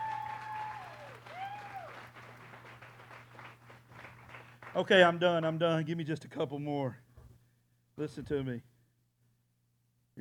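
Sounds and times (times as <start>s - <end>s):
audience applause: 0.0s - 4.9s
speech: 4.8s - 7.0s, 8.0s - 8.7s.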